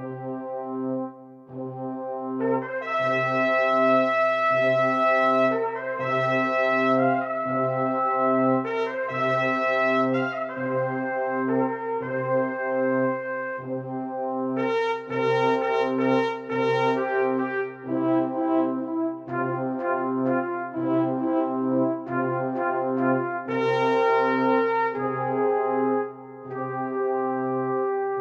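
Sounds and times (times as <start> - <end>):
brass: 0.0 - 28.1.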